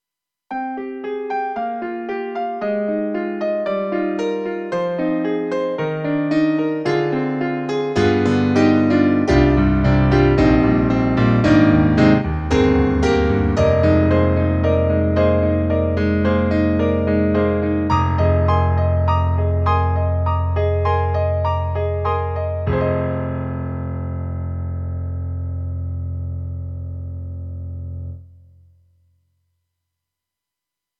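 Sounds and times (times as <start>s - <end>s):
grand piano: 0.5s - 28.5s.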